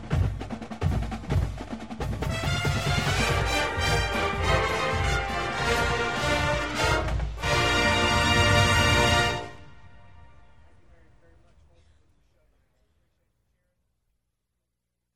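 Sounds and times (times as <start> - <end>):
band playing: 0.0 - 11.0.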